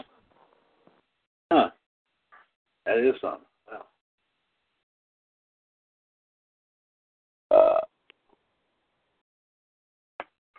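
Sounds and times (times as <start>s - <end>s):
belch: 1.5s - 1.8s, 7.5s - 7.9s
speech: 1.5s - 1.8s, 2.9s - 3.5s.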